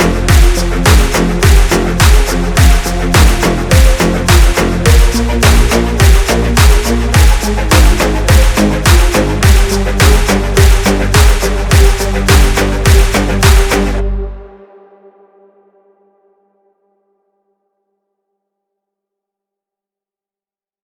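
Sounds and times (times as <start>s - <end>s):
phonk remix: 0.0s - 14.6s.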